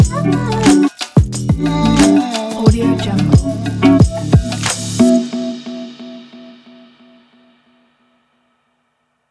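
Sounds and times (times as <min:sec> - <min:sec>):
hip hop music: 0:00.0 - 0:06.4.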